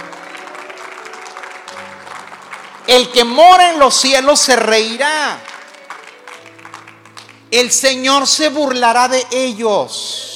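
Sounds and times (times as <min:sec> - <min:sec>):
crowd applause: 0:00.0 - 0:03.8, 0:05.4 - 0:07.5
speech: 0:02.9 - 0:05.5, 0:07.5 - 0:10.3.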